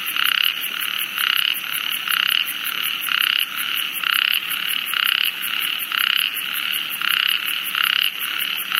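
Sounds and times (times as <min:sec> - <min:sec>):
ornate narrow-mouthed toad calling: 0:00.0 - 0:08.7.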